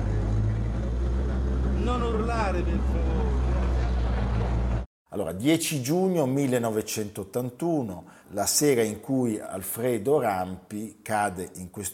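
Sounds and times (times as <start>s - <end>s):
rescue machine engine rumbling: 0.0s - 4.9s
speech: 2.4s - 3.7s, 5.1s - 11.9s.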